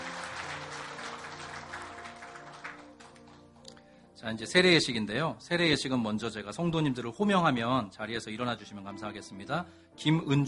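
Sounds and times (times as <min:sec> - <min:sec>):
audience clapping: 0:00.0 - 0:03.8
speech: 0:04.2 - 0:10.4.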